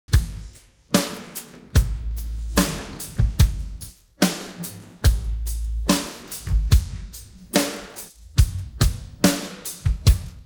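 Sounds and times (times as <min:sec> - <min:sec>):
drum pattern: 0:00.1 - 0:10.4.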